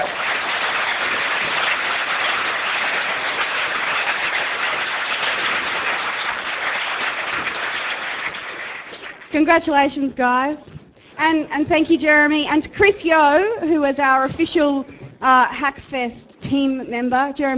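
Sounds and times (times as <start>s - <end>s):
audience applause: 0.0s - 9.4s
speech: 9.4s - 17.5s.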